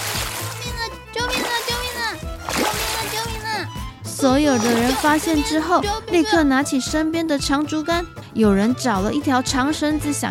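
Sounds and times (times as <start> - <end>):
splash of a person falling into a stream: 0.0 - 3.6, 4.6 - 5.4
speech: 4.2 - 10.2.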